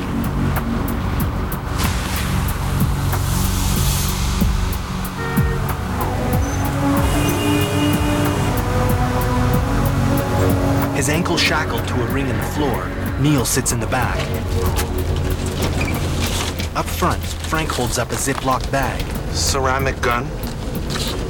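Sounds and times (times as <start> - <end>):
van driving at night on rain-slick city streets: 0.0 - 21.2
wet road hiss: 1.5 - 9.3
speech: 11.4 - 14.9, 16.8 - 21.2.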